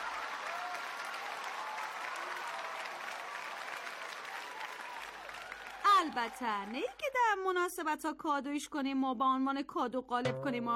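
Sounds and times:
crowd clapping as a tribute: 0.0s - 7.2s
speech: 6.0s - 10.7s.

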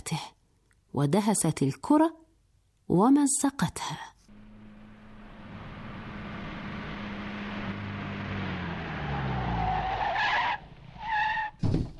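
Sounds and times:
speech: 1.0s - 2.2s, 2.9s - 4.1s
car skidding in a traffic accident: 4.3s - 11.6s.

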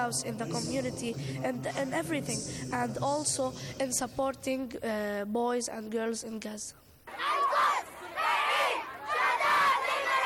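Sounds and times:
speech: 0.0s - 7.4s
protest crowd shouting in unison: 7.1s - 10.2s.

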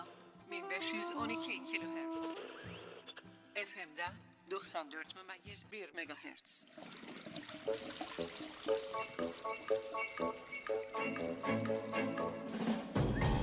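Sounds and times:
speech: 0.9s - 2.9s, 3.6s - 12.8s
water running from an open tap: 6.6s - 12.1s.

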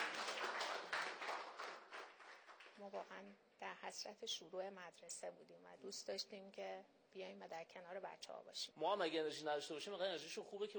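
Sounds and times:
applause from a school gathering for a teacher: 0.0s - 2.9s
speech: 2.8s - 10.7s.

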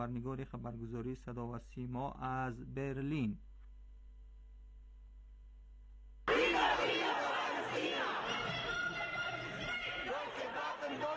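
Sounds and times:
speech: 0.0s - 3.5s
large crowd of protesters chanting slogans: 6.3s - 11.1s.

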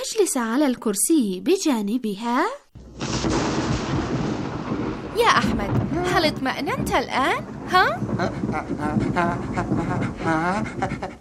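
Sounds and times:
speech: 0.1s - 3.5s, 5.2s - 11.1s
thunder: 2.8s - 11.1s.

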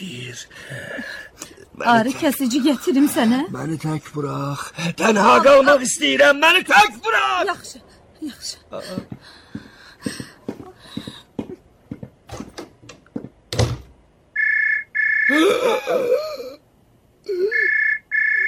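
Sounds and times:
speech: 0.0s - 9.4s
knocks and clatter: 10.1s - 14.0s
telephone ringing: 14.4s - 15.3s, 17.6s - 18.4s.

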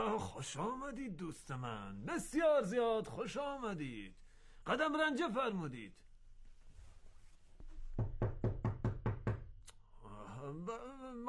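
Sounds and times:
speech: 0.0s - 6.1s, 10.4s - 11.2s
knocking on a door: 7.9s - 9.6s.

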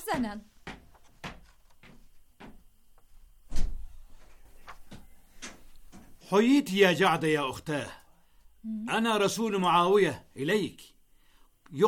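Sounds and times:
speech: 0.2s - 0.5s, 6.3s - 8.0s, 8.6s - 10.9s
door being opened: 3.5s - 4.0s.

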